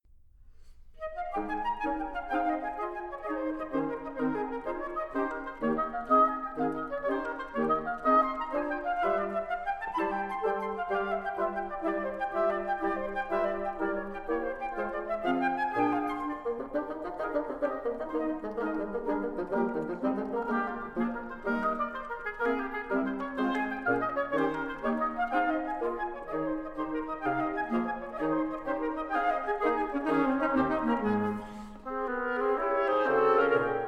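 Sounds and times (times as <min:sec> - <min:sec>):
timpani: 0:00.1 - 0:33.8.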